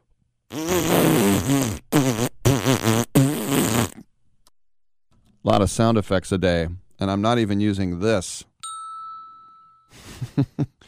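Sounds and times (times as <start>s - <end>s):
Bronx cheer raspberry: 0.5s - 4.1s
speech: 5.5s - 8.5s, 10.4s - 10.7s.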